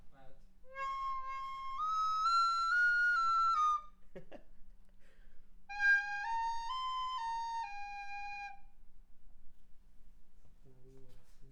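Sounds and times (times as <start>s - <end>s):
furulya Hungarian shepherd's flute: 0.6s - 4.0s, 5.7s - 8.8s.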